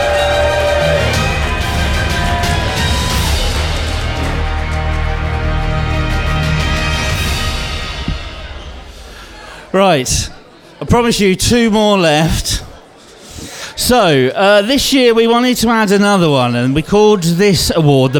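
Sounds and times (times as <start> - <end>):
crowd applauding: 0.0 - 9.1
speech: 9.8 - 12.7, 13.8 - 18.1.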